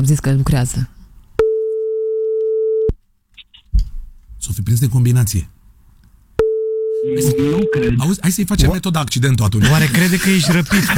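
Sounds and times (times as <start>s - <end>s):
speech: 0.0s - 1.0s, 4.4s - 5.6s, 7.0s - 10.9s
long steady telephone tone while calling a friend: 1.4s - 2.9s, 6.4s - 8.0s
laughter: 9.6s - 10.9s.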